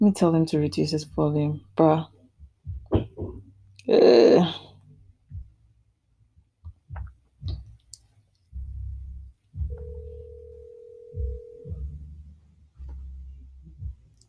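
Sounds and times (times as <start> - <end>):
speech: 0.0 - 2.1, 3.9 - 4.6
phone call ringing out: 9.8 - 11.8.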